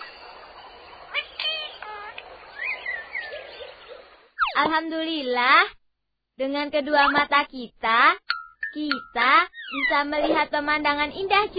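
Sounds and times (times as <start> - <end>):
birds calling: 0.0 - 4.7, 8.4 - 10.1
speech: 4.6 - 5.8, 6.4 - 11.5.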